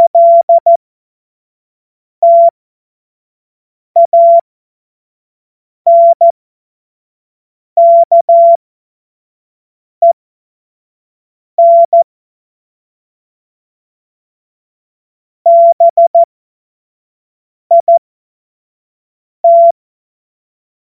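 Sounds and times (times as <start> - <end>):
CW Morse code beeps: 0.0 - 0.8, 2.2 - 2.5, 4.0 - 4.4, 5.9 - 6.3, 7.8 - 8.6, 11.6 - 12.0, 15.5 - 16.3, 17.7 - 18.0, 19.4 - 19.8.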